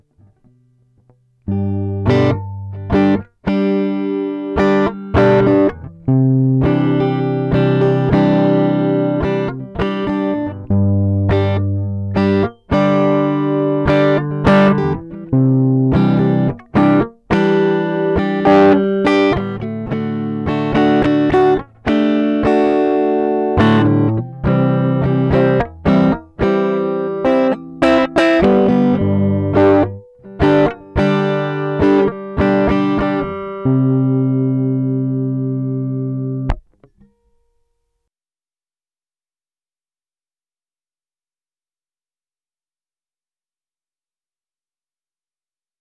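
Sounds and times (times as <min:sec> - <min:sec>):
instrument through Warm Audio WAMPEX preamp: 0:00.0 - 0:37.4.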